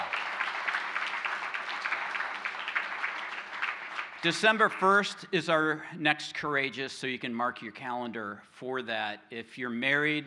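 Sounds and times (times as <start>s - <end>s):
audience applause: 0.0s - 4.9s
speech: 4.2s - 10.2s.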